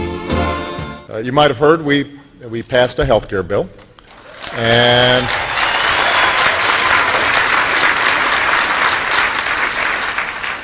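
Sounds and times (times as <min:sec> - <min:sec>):
speech: 0:01.1 - 0:03.8, 0:04.4 - 0:05.5
audience applause: 0:04.2 - 0:10.6.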